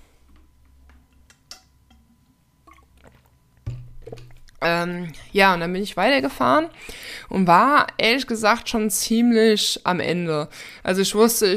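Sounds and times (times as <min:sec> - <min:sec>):
person drinking a beverage: 0:01.9 - 0:05.4
swallowing gulp: 0:02.7 - 0:03.4
speech: 0:04.6 - 0:11.5.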